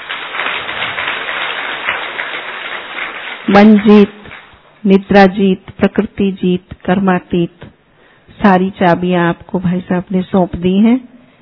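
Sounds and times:
audience clapping applause: 0:00.0 - 0:04.6
speech: 0:03.5 - 0:04.2, 0:04.8 - 0:07.7, 0:08.4 - 0:11.1.

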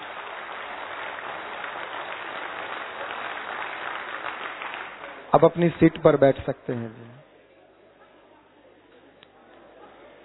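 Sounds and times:
crowd clapping: 0:00.0 - 0:07.1
speech: 0:05.3 - 0:07.2.

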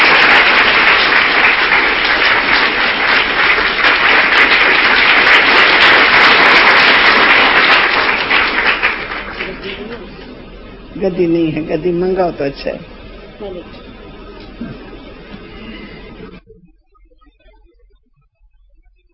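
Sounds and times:
hand clapping in welcome: 0:00.0 - 0:10.3
speech: 0:11.0 - 0:14.0, 0:14.6 - 0:14.8.

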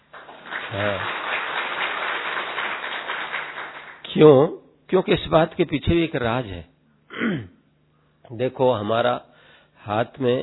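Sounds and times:
audience clapping loudly: 0:00.0 - 0:04.1
speech: 0:00.7 - 0:01.2, 0:04.2 - 0:07.5, 0:08.3 - 0:10.4.

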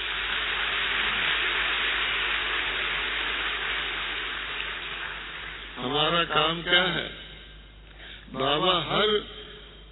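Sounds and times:
crowd clapping loudly: 0:00.0 - 0:05.9
speech: 0:05.8 - 0:07.2, 0:08.3 - 0:09.3.

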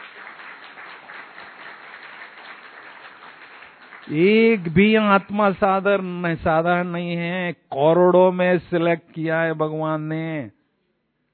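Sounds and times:
audience clapping: 0:00.0 - 0:05.8
speech: 0:04.1 - 0:10.6.

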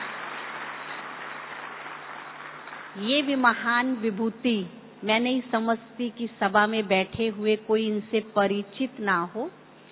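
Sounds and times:
audience clapping in welcome for an honoured guest at a gathering: 0:00.0 - 0:03.4
speech: 0:03.0 - 0:09.6.

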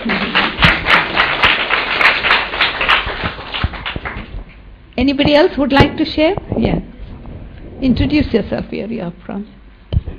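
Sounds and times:
audience clapping: 0:00.0 - 0:04.6
speech: 0:05.1 - 0:06.9, 0:07.8 - 0:09.6.

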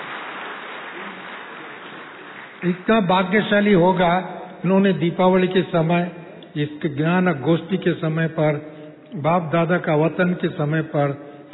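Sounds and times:
applause at a religious gathering on Diwali: 0:00.0 - 0:02.9
speech: 0:02.6 - 0:11.5.

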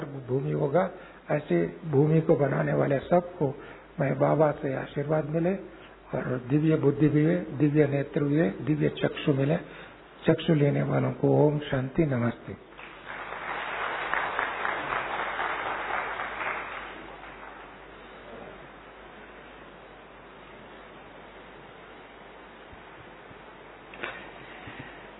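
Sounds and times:
soft steady hiss: 0:00.0 - 0:25.1
speech: 0:00.3 - 0:12.6
audience clapping: 0:12.7 - 0:18.3.

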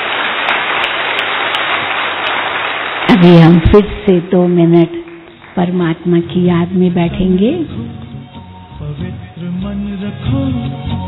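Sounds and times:
audience applause: 0:00.0 - 0:04.2, 0:05.0 - 0:05.8
speech: 0:03.2 - 0:05.0, 0:05.6 - 0:08.0, 0:09.7 - 0:11.0.

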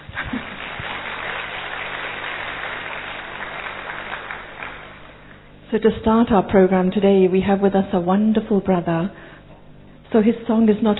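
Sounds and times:
crowd clapping: 0:00.0 - 0:05.4
speech: 0:05.7 - 0:09.3, 0:10.1 - 0:10.9.

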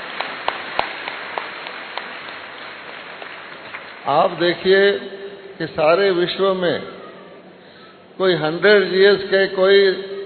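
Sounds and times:
loud audience applause: 0:00.0 - 0:04.6
speech: 0:04.0 - 0:07.0, 0:08.2 - 0:10.1.

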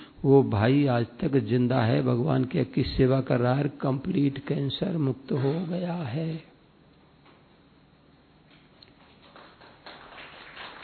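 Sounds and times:
speech: 0:00.2 - 0:06.5
audience clapping softly: 0:08.8 - 0:10.8.

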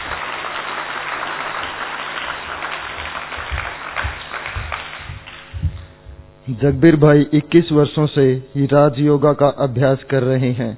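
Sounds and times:
audience applause welcoming a guest: 0:00.0 - 0:05.6
speech: 0:06.5 - 0:10.7.

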